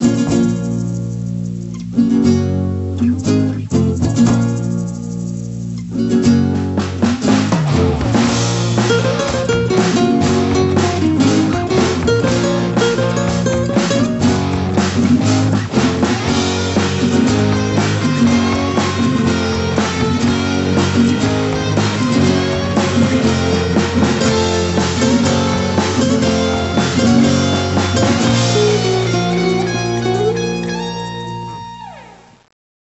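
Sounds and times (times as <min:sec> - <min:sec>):
intro music: 0:00.0 - 0:32.2.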